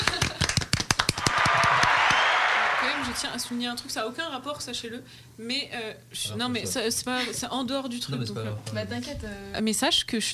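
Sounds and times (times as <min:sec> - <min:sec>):
quick sharp hand claps: 0:00.0 - 0:03.6
speech: 0:03.2 - 0:10.3.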